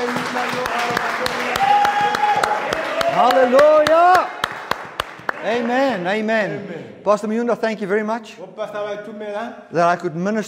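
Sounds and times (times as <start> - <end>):
audience clapping hands: 0.0 - 6.5
speech: 3.2 - 3.8, 5.4 - 10.4.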